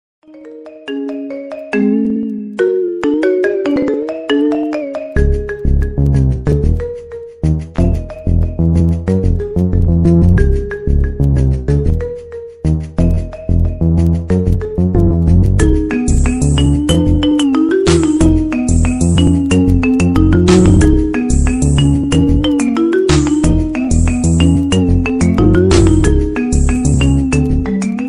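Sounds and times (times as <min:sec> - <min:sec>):
marimba remix iPhone ringtone: 0:00.2 - 0:28.0.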